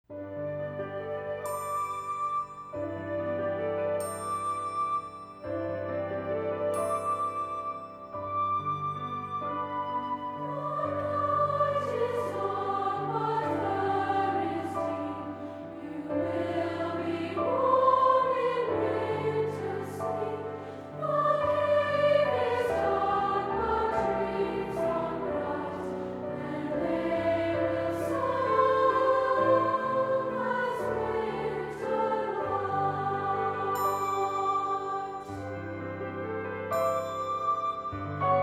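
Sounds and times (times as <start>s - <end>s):
lullaby music: 0.2s - 38.4s.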